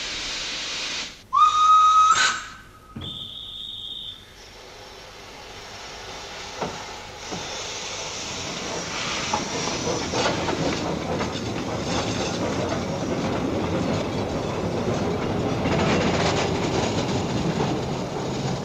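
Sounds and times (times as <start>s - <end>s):
steam hiss: 0.0s - 10.9s
miniature steam locomotive chuffing: 0.0s - 18.6s
miniature steam locomotive whistle blasts on the Monte Generoso rack railway: 1.3s - 5.0s.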